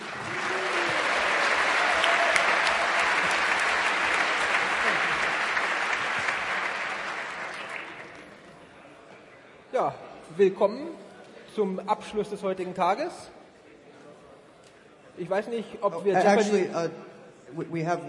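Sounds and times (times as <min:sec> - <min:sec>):
audience applause for Jeopardy! quiz contestants at an event: 0:00.0 - 0:08.4
speech: 0:09.8 - 0:11.0, 0:11.6 - 0:13.4, 0:15.2 - 0:18.0.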